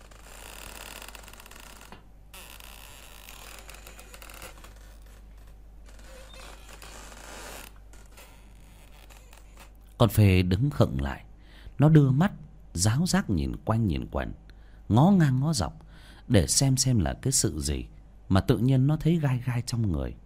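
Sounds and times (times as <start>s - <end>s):
creaking of a swinging hammock: 0.0s - 9.9s
speech: 10.0s - 20.2s.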